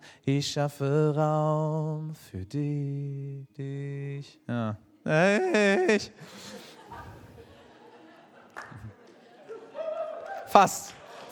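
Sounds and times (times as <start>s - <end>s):
speech: 0.2s - 6.6s, 10.5s - 11.0s
people chuckling: 5.3s - 11.3s
audience clapping: 8.3s - 11.3s.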